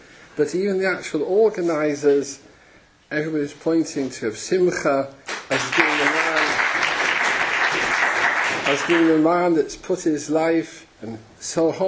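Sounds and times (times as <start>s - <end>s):
speech: 0.4s - 2.5s, 3.1s - 6.4s, 8.7s - 11.8s
audience clapping at a community gathering: 5.3s - 9.3s.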